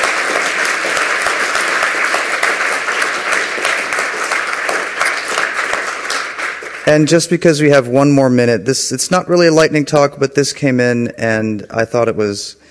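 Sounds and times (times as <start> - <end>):
audience applause: 0.0 - 7.4
speech: 6.9 - 12.6.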